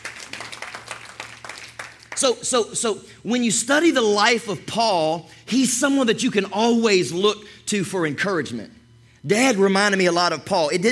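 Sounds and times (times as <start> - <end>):
audience clapping in church: 0.0 - 2.4
speech: 2.2 - 10.9.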